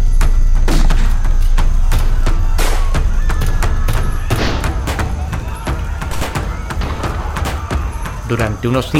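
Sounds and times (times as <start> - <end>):
loud continuous din of battle: 0.0 - 8.9
chaotic gunfire as police open fire on a crowd of cultists: 2.1 - 8.9
speech: 8.3 - 8.9.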